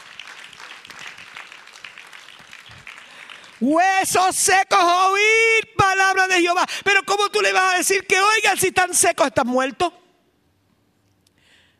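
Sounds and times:
audience applause: 0:00.0 - 0:03.7
speech: 0:03.6 - 0:10.0.

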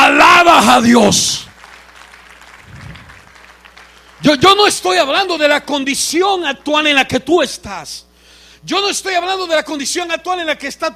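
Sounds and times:
speech: 0:00.6 - 0:01.5, 0:04.2 - 0:10.9
audience applause: 0:01.5 - 0:04.6.

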